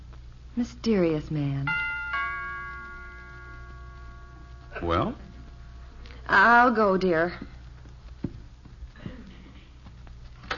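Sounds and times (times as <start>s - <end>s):
speech: 0.6s - 1.8s, 4.8s - 5.3s, 6.3s - 7.6s
doorbell chime: 1.7s - 5.2s.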